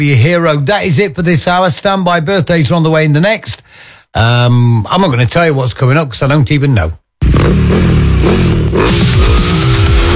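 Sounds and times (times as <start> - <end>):
speech: 0.0 - 9.2
motorcycle engine revving: 7.2 - 10.1.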